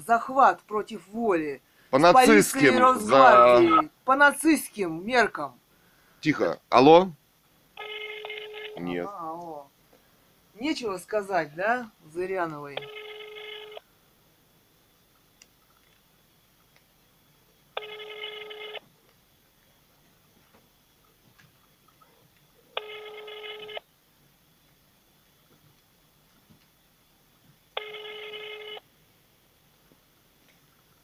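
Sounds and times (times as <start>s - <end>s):
speech: 0.1s - 5.6s, 6.2s - 7.2s, 8.8s - 9.5s, 10.6s - 13.0s
ringback tone of an unanswered telephone call: 2.2s - 3.9s, 7.8s - 9.1s, 12.8s - 13.8s, 17.8s - 18.8s, 22.8s - 23.8s, 27.8s - 28.8s.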